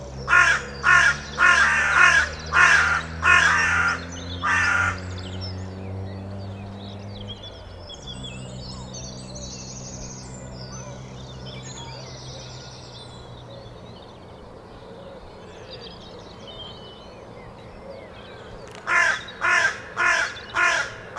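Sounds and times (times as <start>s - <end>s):
carrion crow Corvus corone giving loud harsh even caws: 0.3s - 5.2s, 18.3s - 21.1s.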